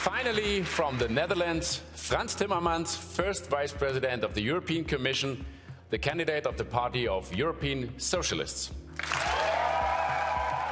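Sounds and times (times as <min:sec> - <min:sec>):
speech: 0:00.0 - 0:09.2
audience applause: 0:09.0 - 0:10.7.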